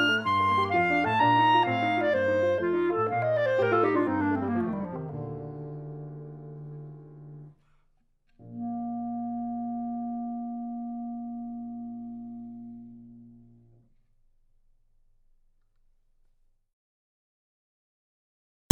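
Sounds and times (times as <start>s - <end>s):
clarinet: 0.0s - 7.6s, 8.4s - 13.9s
piano: 0.0s - 7.6s, 8.3s - 13.8s.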